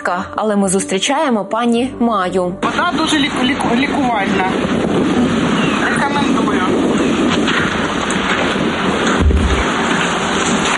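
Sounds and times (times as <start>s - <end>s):
speech: 0.0s - 6.7s
explosions booming nearby: 7.2s - 10.1s.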